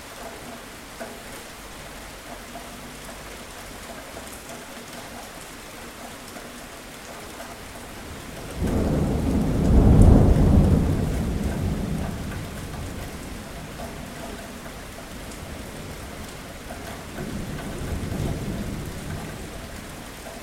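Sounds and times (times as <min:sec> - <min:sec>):
steady rain: 0:00.0 - 0:20.4
rumble of thunder: 0:08.1 - 0:20.2.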